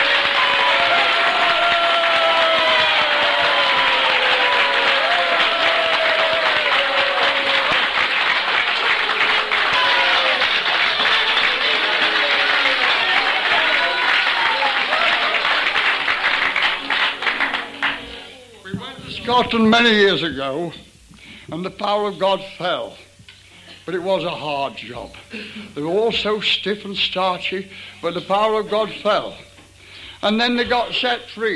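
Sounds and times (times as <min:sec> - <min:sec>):
voices shouting and cheering: 0:00.0 - 0:08.0, 0:08.8 - 0:15.9
large crowd clapping heartily: 0:00.0 - 0:19.8
speech: 0:19.4 - 0:20.9, 0:21.5 - 0:23.0, 0:23.9 - 0:29.5, 0:30.2 - 0:31.5.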